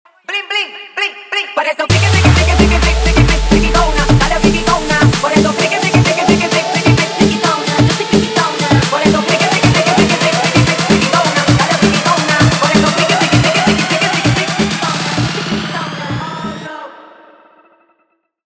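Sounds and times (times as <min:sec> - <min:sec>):
intro outro music: 0:01.9 - 0:16.7.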